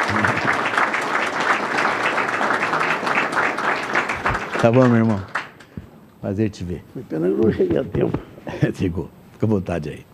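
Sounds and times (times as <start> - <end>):
laughter: 0.0 - 0.8, 7.2 - 8.8
audience applause: 0.0 - 5.7
speech: 4.6 - 5.3, 6.2 - 10.1.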